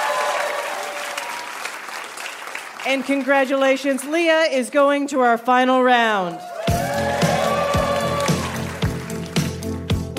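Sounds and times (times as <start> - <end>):
studio audience applause for game show contestants: 0.0 - 4.3, 6.3 - 10.1
speech: 2.8 - 6.5.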